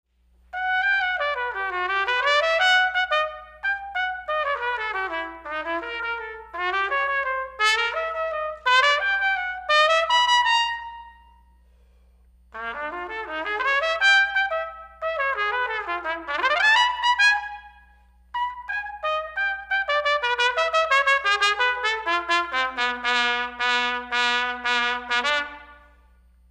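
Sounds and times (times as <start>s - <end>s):
trumpet: 0.5s - 11.8s, 12.5s - 26.5s.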